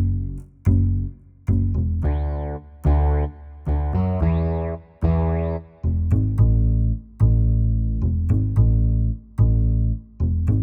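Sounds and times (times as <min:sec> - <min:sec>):
110 bpm bass line: 0:00.0 - 0:10.6.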